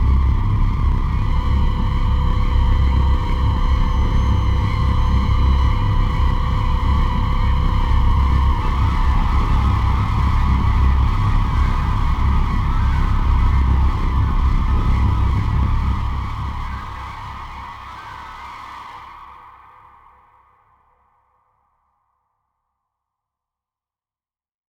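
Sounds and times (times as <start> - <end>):
tense night music: 0.0 - 17.8.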